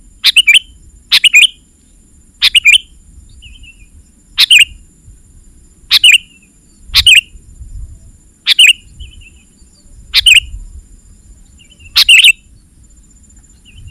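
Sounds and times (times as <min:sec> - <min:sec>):
faint high hum: 0:00.0 - 0:13.8
sooty-headed bulbul bubbly calls: 0:00.2 - 0:01.6, 0:02.4 - 0:02.9, 0:04.4 - 0:04.8, 0:05.9 - 0:06.3, 0:06.9 - 0:07.3, 0:08.5 - 0:09.4, 0:10.1 - 0:10.5, 0:11.6 - 0:12.4.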